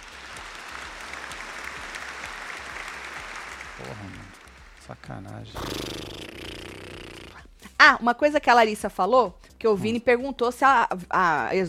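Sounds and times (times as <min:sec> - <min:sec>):
applause: 0:00.0 - 0:05.2
speech: 0:03.8 - 0:06.2, 0:07.8 - 0:11.6.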